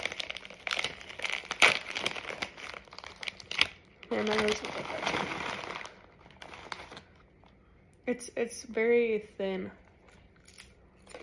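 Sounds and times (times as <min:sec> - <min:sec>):
crinkly plastic chip bag being torn open: 0:00.0 - 0:07.2
speech: 0:04.1 - 0:05.6, 0:08.1 - 0:09.8.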